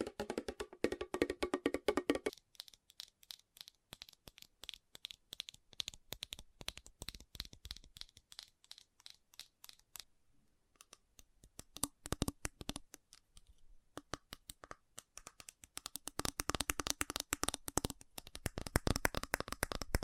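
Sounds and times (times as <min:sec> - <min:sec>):
fast tapping: 0:00.0 - 0:09.8, 0:14.0 - 0:20.0.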